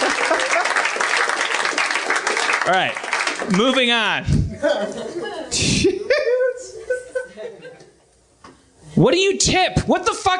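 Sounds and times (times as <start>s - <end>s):
laughter: 0.0s - 1.0s, 4.5s - 8.1s
applause: 0.0s - 4.0s
speech: 2.6s - 6.2s, 9.0s - 10.3s.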